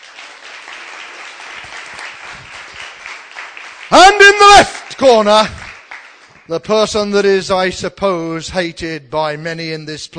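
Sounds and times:
crowd applauding: 0:00.0 - 0:06.6
speech: 0:03.9 - 0:05.6, 0:06.5 - 0:10.1.

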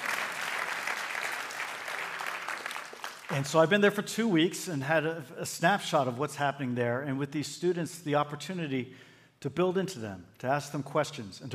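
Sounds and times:
audience clapping: 0:00.0 - 0:03.7
speech: 0:03.3 - 0:11.5.

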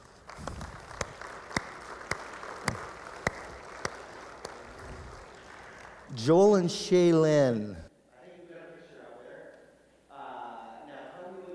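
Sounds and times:
sharp individual claps: 0:00.0 - 0:06.2
audience applause at a church service: 0:00.0 - 0:06.6
speech: 0:06.1 - 0:07.9.

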